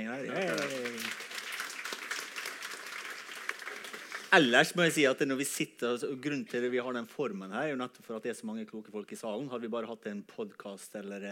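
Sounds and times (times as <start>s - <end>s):
speech: 0.1s - 1.2s, 4.3s - 11.2s
audience applause: 0.3s - 4.6s.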